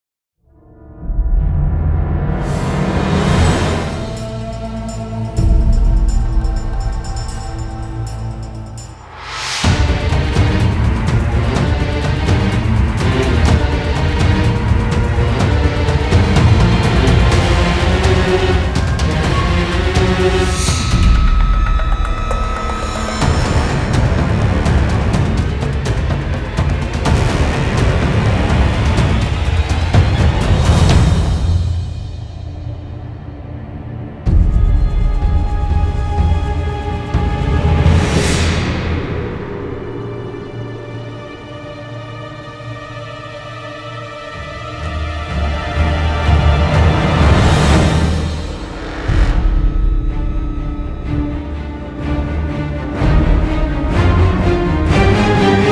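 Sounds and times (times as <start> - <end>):
cinematic hybrid orchestral music: 0.5 - 55.7.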